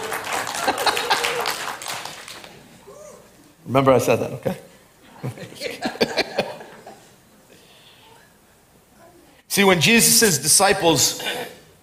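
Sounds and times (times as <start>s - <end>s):
laughter: 0.0s - 1.7s, 5.1s - 7.2s
audience clapping: 0.0s - 2.9s
speech: 0.7s - 1.0s, 3.7s - 5.9s, 9.6s - 11.5s.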